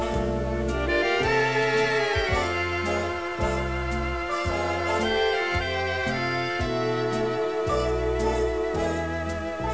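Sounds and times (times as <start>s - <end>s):
foxtrot dance music: 0.0s - 9.7s.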